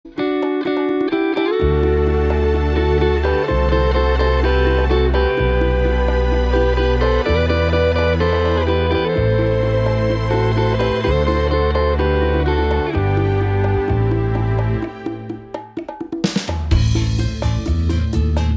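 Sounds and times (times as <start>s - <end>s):
bachata music: 0.0s - 18.5s.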